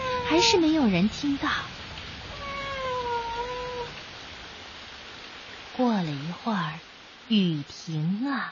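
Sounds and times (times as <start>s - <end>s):
cat meowing: 0.0s - 0.5s, 2.3s - 4.0s
speech: 0.3s - 1.8s, 5.8s - 8.4s.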